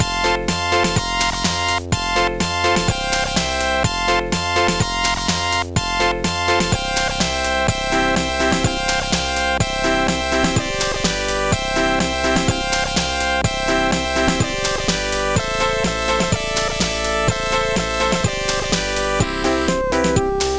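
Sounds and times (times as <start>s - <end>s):
keyboard beat: 0.0s - 20.5s.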